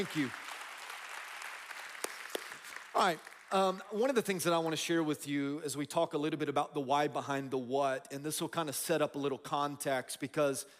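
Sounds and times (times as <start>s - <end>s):
speech: 0.0s - 0.4s, 2.9s - 10.7s
audience applauding: 0.0s - 4.9s.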